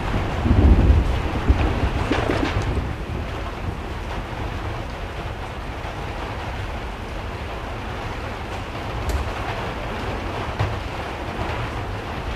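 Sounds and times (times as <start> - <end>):
rain heard from an interior: 0.0 - 12.3.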